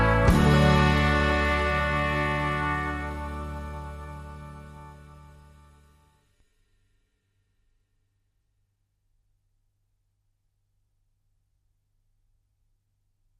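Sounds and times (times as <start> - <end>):
instrumental music: 0.0 - 6.2.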